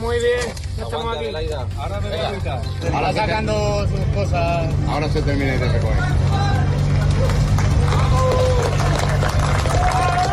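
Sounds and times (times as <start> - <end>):
speech: 0.2 - 6.5
applause for rescue workers: 6.8 - 10.3.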